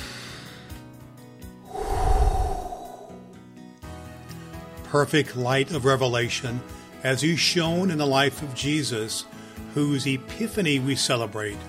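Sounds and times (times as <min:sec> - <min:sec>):
deep breath drawn before a prayer: 0:01.7 - 0:03.4
speech: 0:04.9 - 0:11.6.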